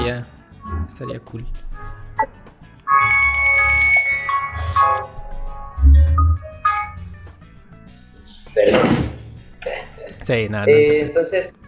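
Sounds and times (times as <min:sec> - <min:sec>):
speech: 0:00.1 - 0:02.4, 0:10.3 - 0:11.6
phone alarm electronic melody: 0:02.9 - 0:05.1, 0:05.8 - 0:07.0
low rumbling: 0:04.5 - 0:07.3.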